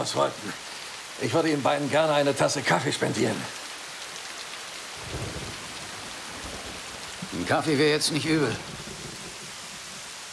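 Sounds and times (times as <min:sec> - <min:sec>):
speech: 0:00.0 - 0:03.6, 0:07.3 - 0:08.8
thunderstorm with heavy rain: 0:04.9 - 0:10.3.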